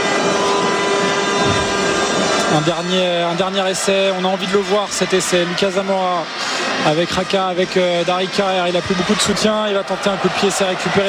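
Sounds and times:
stadium end-of-match siren blaring: 0.0s - 3.1s
rugby stadium crowd roaring: 0.0s - 11.0s
speech: 2.5s - 11.0s.

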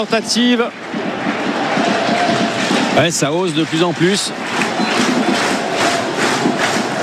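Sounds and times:
speech: 0.0s - 1.4s, 3.0s - 5.0s
football stadium crowd applauding and roaring: 0.0s - 7.0s.

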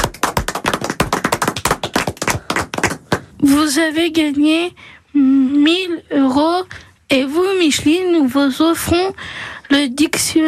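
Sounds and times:
applause from a small group: 0.0s - 3.3s
speech: 3.4s - 10.4s.

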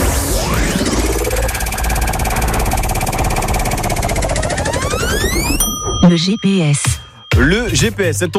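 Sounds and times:
sweeping rising and falling tones: 0.1s - 6.1s
prize wheel spinning with ratcheting clicks: 1.7s - 6.9s
speech: 6.1s - 8.3s.

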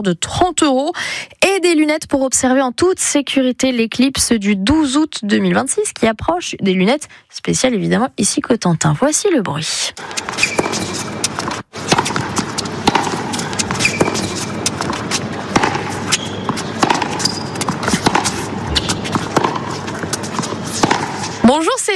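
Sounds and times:
speech: 0.0s - 11.7s, 21.5s - 21.9s
noise: 0.0s - 21.9s
tennis balls being hit at a tournament: 10.0s - 21.7s.

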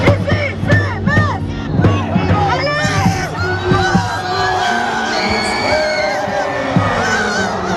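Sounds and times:
700 handball supporters cheering at final whistle in Budapest: 1.1s - 7.7s.

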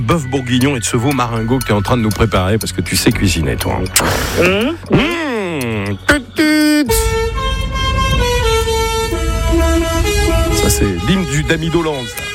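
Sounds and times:
speech: 0.0s - 5.3s, 10.7s - 12.2s
engine rumbling: 0.0s - 12.3s
truck horn honking: 5.9s - 12.3s.

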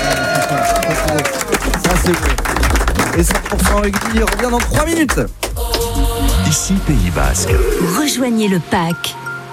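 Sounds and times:
applause: 0.0s - 5.5s
speech: 0.5s - 2.6s, 3.2s - 9.3s.

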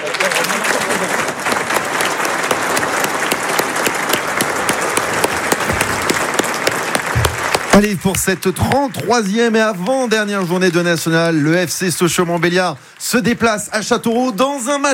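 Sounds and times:
stadium crowd applause: 0.0s - 13.4s
speech: 7.8s - 14.9s.

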